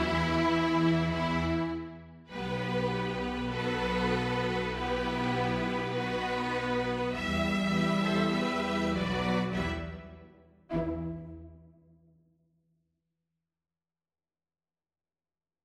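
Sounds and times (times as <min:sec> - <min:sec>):
string orchestra: 0:00.0 - 0:11.7.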